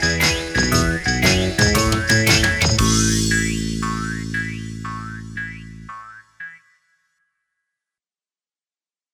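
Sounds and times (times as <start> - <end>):
children's song karaoke: 0.0 - 6.2.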